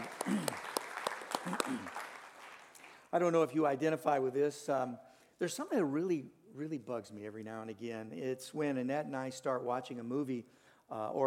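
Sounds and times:
audience applause: 0:00.0 - 0:03.1
speech: 0:03.1 - 0:11.2.

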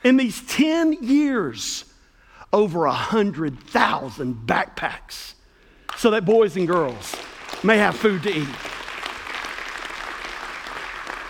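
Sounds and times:
speech: 0:00.0 - 0:01.9, 0:02.5 - 0:05.4, 0:06.0 - 0:08.8
audience applause: 0:06.7 - 0:11.2.

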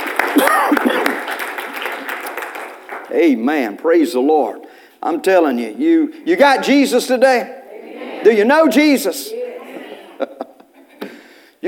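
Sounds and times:
hand clapping: 0:00.0 - 0:03.1
speech: 0:03.1 - 0:07.6, 0:08.2 - 0:09.4
laughter: 0:09.4 - 0:11.1.

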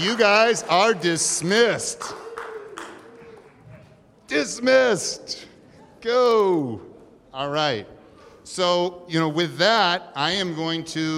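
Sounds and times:
speech: 0:00.0 - 0:02.2, 0:04.3 - 0:11.1
faint audience applause: 0:00.0 - 0:03.9
murmur of voices: 0:00.0 - 0:11.1.

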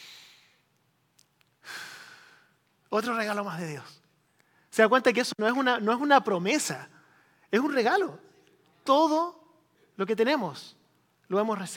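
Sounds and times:
preacher taking deep breaths during a sermon: 0:00.0 - 0:00.7, 0:01.6 - 0:02.6, 0:07.0 - 0:07.5
speech: 0:02.9 - 0:04.0, 0:04.8 - 0:06.9, 0:07.5 - 0:09.4, 0:10.0 - 0:11.7.

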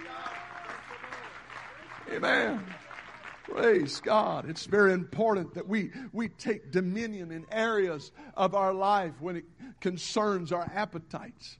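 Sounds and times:
group clapping: 0:00.0 - 0:04.4
speech: 0:02.1 - 0:02.9, 0:03.5 - 0:11.5.

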